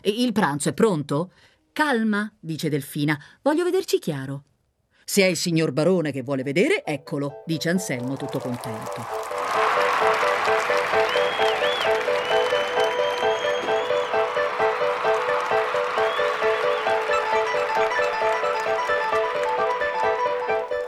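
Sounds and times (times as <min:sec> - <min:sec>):
speech: 0:00.0 - 0:04.5, 0:05.1 - 0:09.3
general applause: 0:07.8 - 0:20.8.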